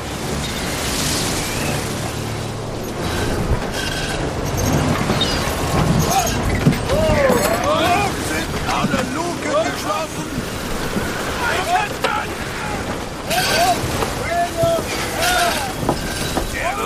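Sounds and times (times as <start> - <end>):
churning water at sea: 0.0 - 16.8
rain at sea: 0.0 - 16.8
wind at sea: 0.0 - 16.8
indistinct voices calling: 4.5 - 16.8.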